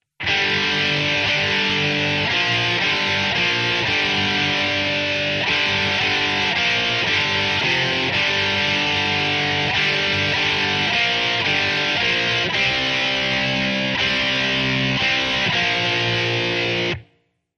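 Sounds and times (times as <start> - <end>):
rock guitar: 0.1 - 17.1.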